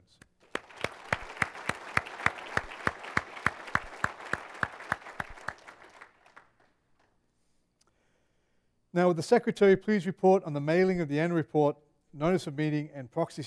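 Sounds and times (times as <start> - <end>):
round of applause: 0.4 - 7.1
speech: 9.0 - 13.4.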